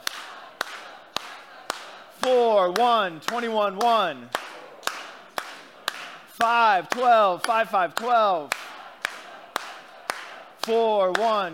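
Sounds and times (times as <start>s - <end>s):
audience clapping in unison: 0.0s - 11.5s
speech: 2.2s - 4.4s, 6.4s - 8.6s, 10.6s - 11.5s.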